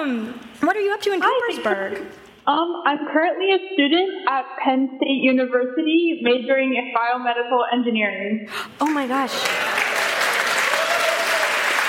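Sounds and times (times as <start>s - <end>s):
speech: 0.0s - 9.8s
crowd applause: 8.8s - 11.8s
faint cheer: 9.4s - 11.8s.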